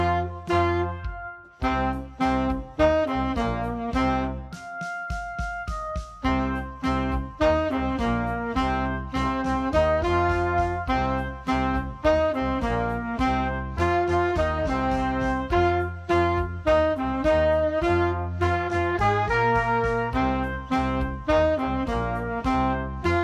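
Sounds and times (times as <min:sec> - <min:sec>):
loud slow hard rock blues tenor saxophone: 0:00.0 - 0:23.2.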